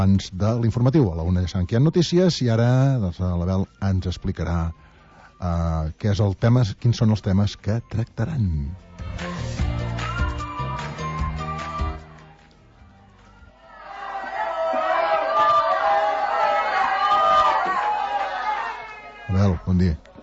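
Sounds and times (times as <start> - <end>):
speech: 0.0 - 9.6, 19.6 - 20.1
people shouting at a city council plenary session: 9.2 - 12.2, 13.5 - 19.4.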